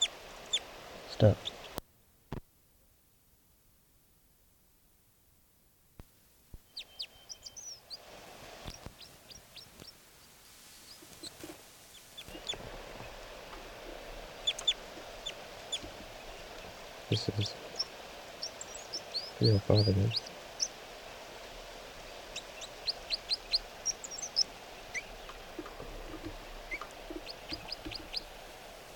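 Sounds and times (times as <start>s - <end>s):
bird flight calls: 0.0s - 1.8s, 6.6s - 28.9s
hiss: 0.0s - 28.9s
speech: 1.2s - 1.5s, 17.2s - 17.6s, 19.4s - 20.3s.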